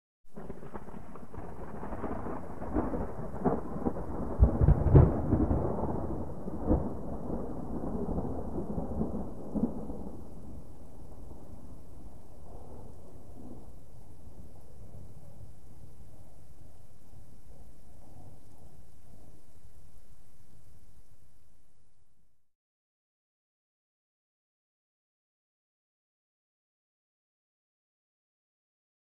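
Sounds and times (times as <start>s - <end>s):
small distant thunder: 0.3s - 19.5s.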